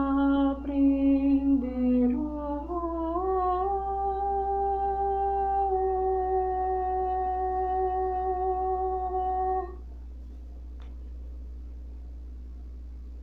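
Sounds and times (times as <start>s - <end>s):
contralto voice: 0.0s - 9.8s.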